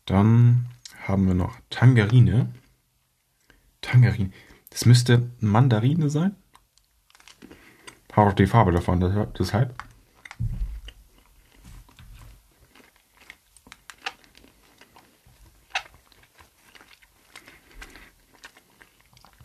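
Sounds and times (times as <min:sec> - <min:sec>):
speech: 0:00.1 - 0:02.6, 0:03.8 - 0:06.4, 0:08.2 - 0:10.6
chewing soft gummy jelly beans: 0:06.4 - 0:08.9, 0:09.7 - 0:19.4
teeth squeaking: 0:15.6 - 0:16.3.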